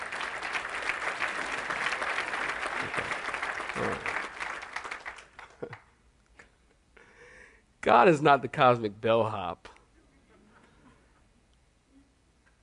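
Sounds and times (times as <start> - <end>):
audience clapping hands: 0.0 - 6.0
speech: 7.8 - 9.7.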